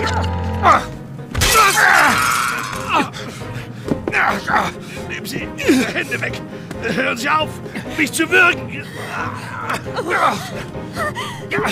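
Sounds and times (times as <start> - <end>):
speech: 0.6 - 0.9, 5.2 - 11.6
vase shattering: 1.3 - 3.0
low grunts and voices: 4.1 - 10.6.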